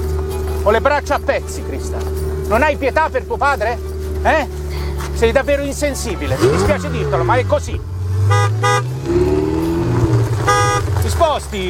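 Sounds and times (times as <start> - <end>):
Ferrari engine running: 0.0 - 11.6
speech: 0.6 - 9.4, 11.1 - 11.6
Ferrari car horn toots: 6.0 - 7.6, 8.2 - 11.4.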